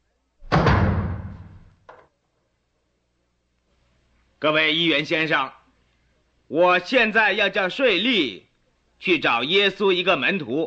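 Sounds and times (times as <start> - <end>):
heavy door shut by a guard: 0.4 - 1.7
speech: 4.4 - 5.6, 6.5 - 10.6.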